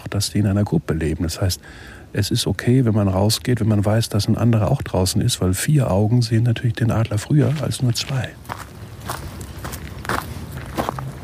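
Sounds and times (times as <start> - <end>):
speech: 0.1 - 9.3
footsteps crunching on ground walking to burrow entrance: 6.8 - 11.2.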